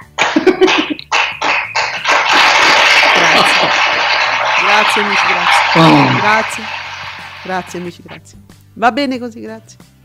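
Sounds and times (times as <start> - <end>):
applause sound effect from smart speaker: 0.0 - 8.2
laughter: 0.2 - 1.1, 2.0 - 6.2
speech: 5.0 - 6.8, 7.4 - 10.0.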